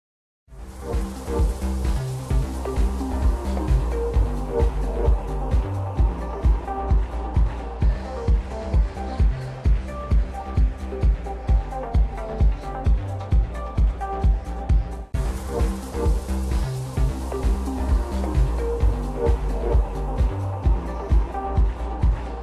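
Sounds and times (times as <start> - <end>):
custom arcade music for billiards room: 0.5 - 22.4.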